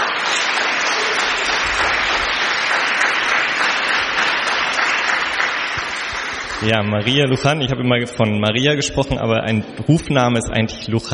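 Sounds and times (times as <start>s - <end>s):
audience applause: 0.0s - 7.5s
speech: 6.6s - 11.1s.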